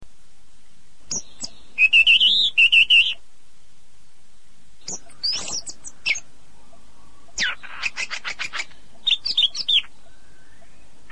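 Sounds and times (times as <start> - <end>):
birds whistling and chirping: 1.1 - 3.2, 4.8 - 11.1.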